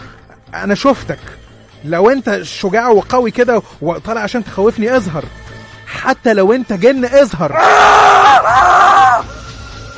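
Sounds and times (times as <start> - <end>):
speech: 0.6 - 8.0
man screaming in fright in a cornfield: 7.5 - 9.2.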